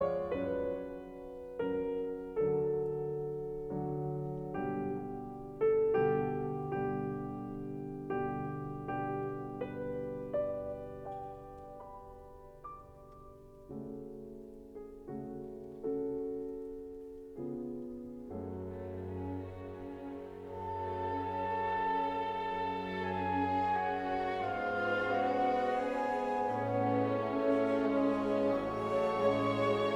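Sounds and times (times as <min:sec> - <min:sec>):
romantic piano concerto in D minor: 0:00.0 - 0:29.9.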